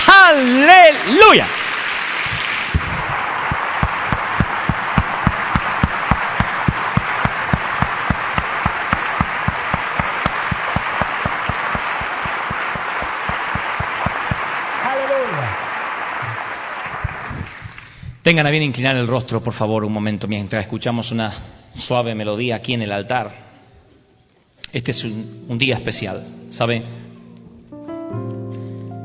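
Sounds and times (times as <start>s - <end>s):
audience applause: 0.0s - 18.0s
speech: 0.3s - 1.6s, 18.3s - 23.4s, 24.7s - 27.0s.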